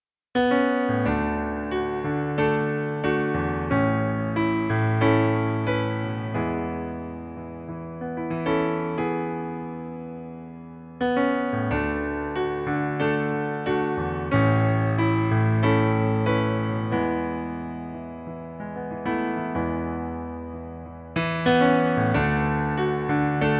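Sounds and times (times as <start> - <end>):
piano backing track in E major: 0.4 - 23.5.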